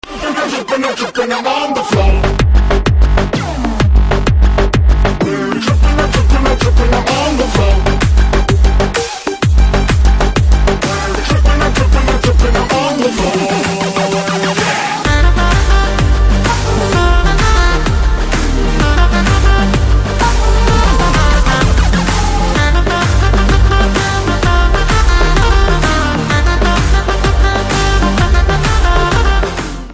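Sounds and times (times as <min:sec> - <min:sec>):
background music theme: 0:00.0 - 0:29.9.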